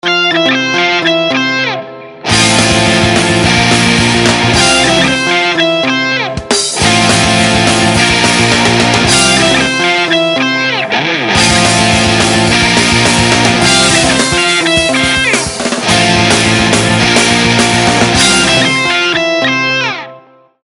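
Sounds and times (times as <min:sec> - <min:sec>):
rock ringtone: 0:00.0 - 0:20.2.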